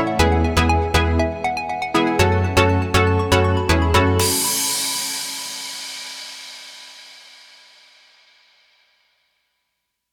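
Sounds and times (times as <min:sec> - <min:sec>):
energetic electronic pop: 0:00.0 - 0:05.7.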